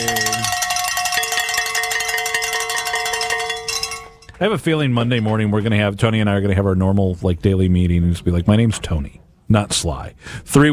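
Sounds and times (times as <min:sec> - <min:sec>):
bells ringing: 0:00.0 - 0:05.6
speech: 0:04.4 - 0:10.7.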